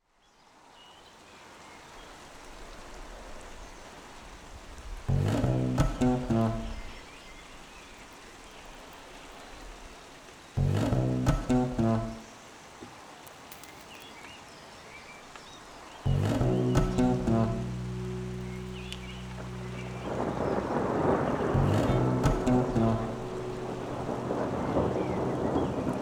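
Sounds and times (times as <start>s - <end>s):
song: 5.1s - 6.8s, 10.6s - 12.2s, 16.1s - 25.9s.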